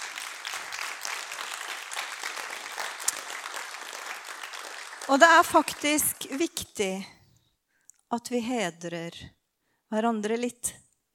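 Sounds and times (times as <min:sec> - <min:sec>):
crowd applause: 0:00.0 - 0:06.5
speech: 0:05.1 - 0:07.2, 0:08.1 - 0:10.8.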